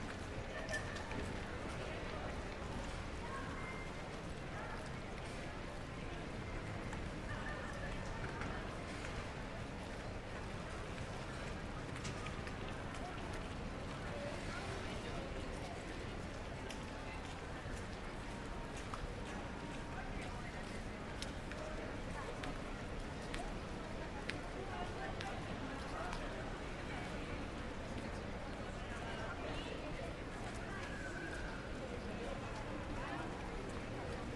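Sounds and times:
pedestrians walla in a Madrid Sol side street: 0:00.0 - 0:34.3
rain in a side street in Madrid Sol: 0:00.0 - 0:34.3.

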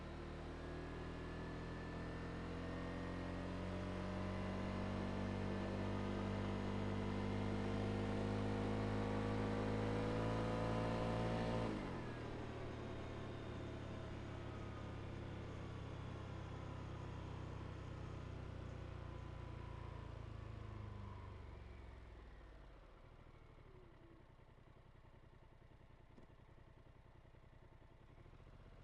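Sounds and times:
ATV engine driving onto onboard ramps and stopping: 0:00.2 - 0:25.3.

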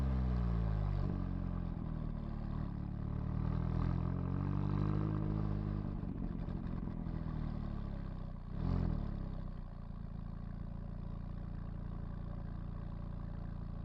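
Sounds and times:
McLaren 570S exhaust driven fast, recorded onboard: 0:00.2 - 0:13.8.

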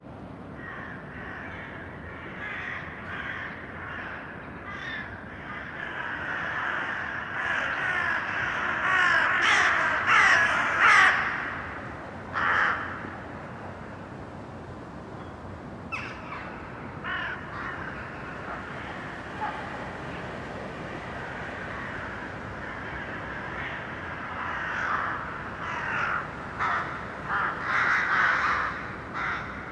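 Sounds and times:
steady urban hum: 0:00.0 - 0:29.6
crows cawing: 0:00.6 - 0:13.2, 0:15.9 - 0:19.7, 0:20.9 - 0:29.6.

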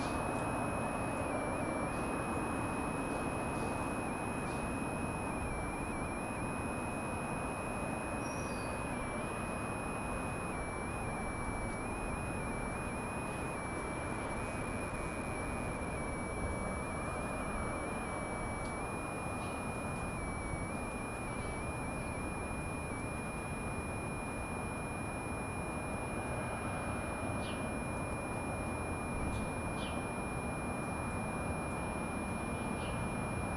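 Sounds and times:
wind in wet air on a quiet street: 0:00.0 - 0:33.5
sparse birds on a quiet street: 0:08.1 - 0:08.9.

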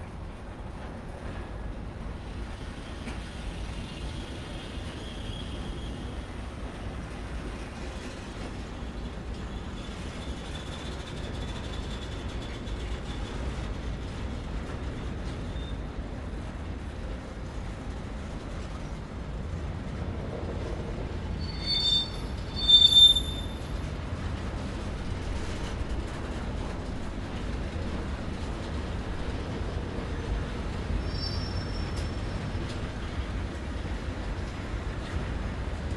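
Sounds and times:
cargo train tank car passing slowly close in port railroad yard: 0:00.0 - 0:35.9
shunting squeal in port railroad yard: 0:21.4 - 0:23.7, 0:31.0 - 0:32.2.

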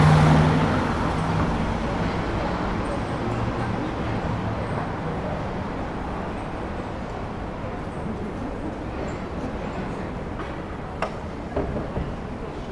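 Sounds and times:
daytime side street ambience in Vienna Austria: 0:00.0 - 0:12.7.

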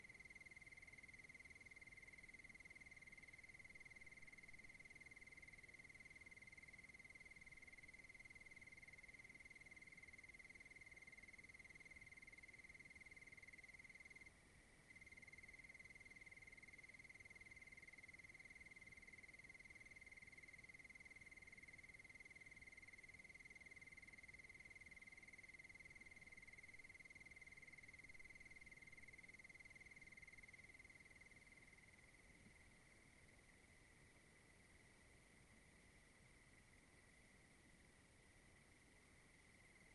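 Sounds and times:
cricket trilling: 0:00.0 - 0:14.3, 0:14.9 - 0:32.2
background hiss: 0:00.0 - 0:39.9.

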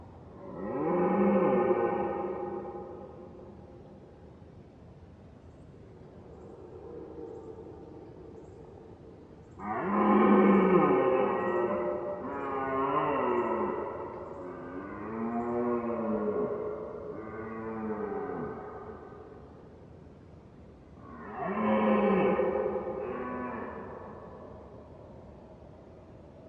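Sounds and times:
red deer moaning roar: 0:00.4 - 0:02.8, 0:09.6 - 0:18.8, 0:21.0 - 0:24.4.

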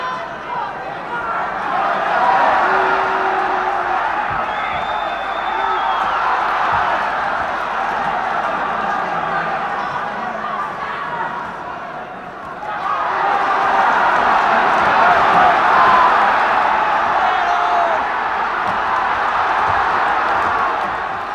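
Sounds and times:
people yelling in a fight: 0:00.0 - 0:21.3.

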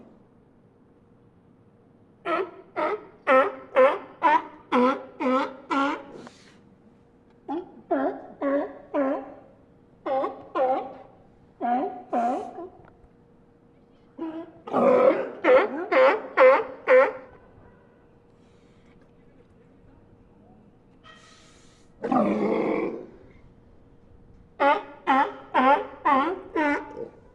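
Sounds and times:
group of sea lions barking: 0:02.2 - 0:06.2, 0:07.5 - 0:12.8, 0:14.2 - 0:17.4, 0:24.6 - 0:27.3.

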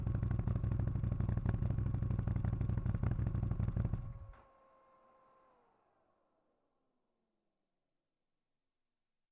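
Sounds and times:
Textron Wildcat X engine and exhaust starting driving reversing and stopping: 0:00.0 - 0:06.1.

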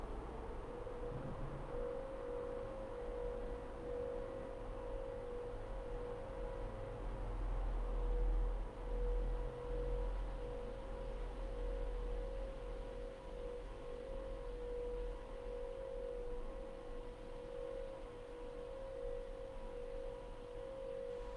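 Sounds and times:
fire department siren: 0:00.1 - 0:21.3.

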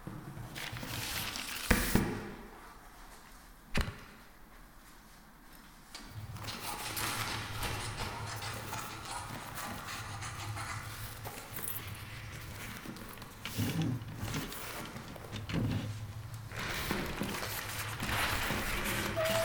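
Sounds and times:
medieval office ambience: 0:00.6 - 0:02.0, 0:06.1 - 0:19.4.

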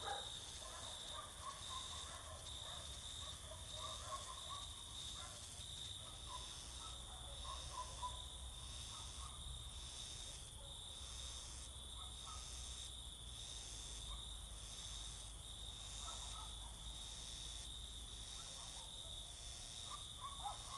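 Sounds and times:
dogs barking all around at night: 0:00.0 - 0:05.4, 0:06.1 - 0:08.2, 0:16.0 - 0:16.8, 0:19.9 - 0:20.7
crickets singing in summer fields at night: 0:00.0 - 0:20.7.

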